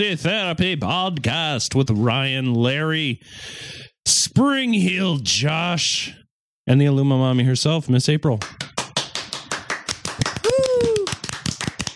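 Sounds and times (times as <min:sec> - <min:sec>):
speech: 0:00.0 - 0:08.7
soundboard clapping sound effect: 0:08.4 - 0:11.9
person whooping: 0:10.2 - 0:11.3.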